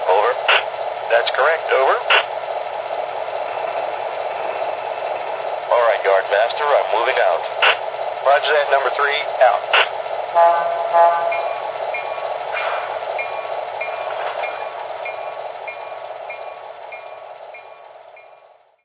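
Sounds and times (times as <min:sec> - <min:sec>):
SW1500 locomotive: 0:00.0 - 0:18.8.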